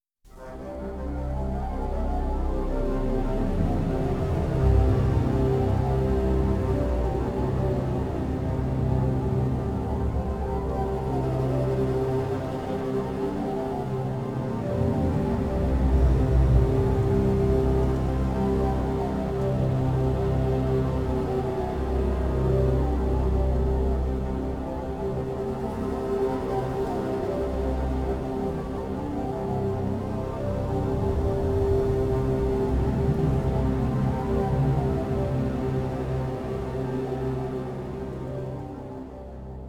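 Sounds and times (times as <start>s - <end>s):
drone: 0.4s - 39.6s.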